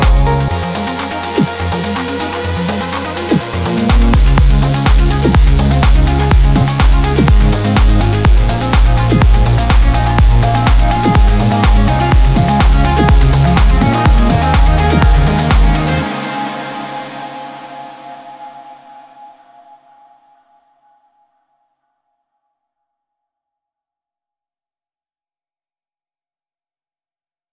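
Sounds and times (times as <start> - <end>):
techno music: 0.0 - 18.8.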